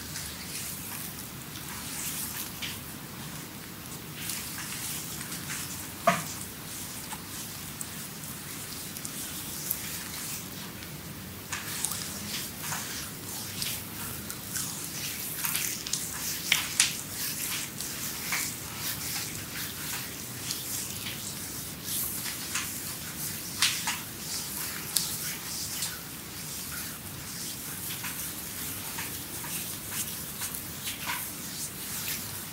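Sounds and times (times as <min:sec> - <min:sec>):
hands rubbing and sliding over skin in massage: 0:00.2 - 0:10.9, 0:11.5 - 0:32.5
slaps and taps on skin: 0:06.0 - 0:06.4.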